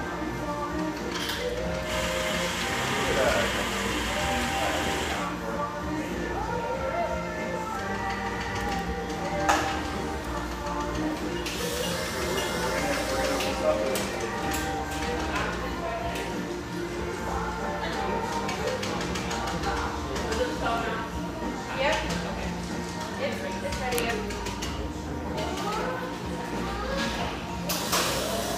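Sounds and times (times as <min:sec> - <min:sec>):
cafe chatter of overlapping voices: 0:00.0 - 0:28.5.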